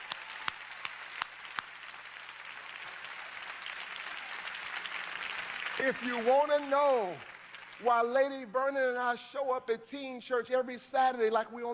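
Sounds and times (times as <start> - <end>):
audience clapping: 0.0 - 8.7
speech: 5.8 - 11.7.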